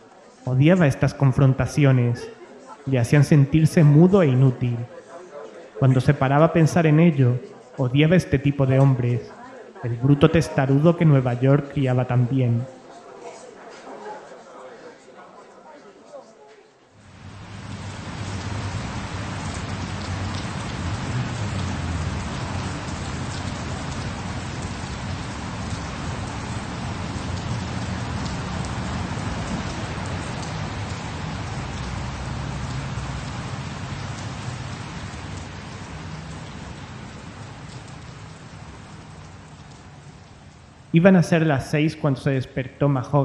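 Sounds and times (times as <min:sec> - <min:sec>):
light rain drizzle: 0:00.0 - 0:43.2
speech: 0:00.5 - 0:05.0, 0:05.8 - 0:12.8, 0:41.0 - 0:43.2.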